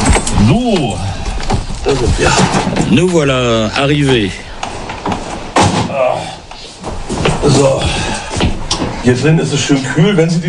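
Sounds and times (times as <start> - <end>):
door slamming shut: 0.0 - 3.4, 4.0 - 9.0
speech: 0.5 - 5.2, 7.4 - 8.2, 9.0 - 10.4.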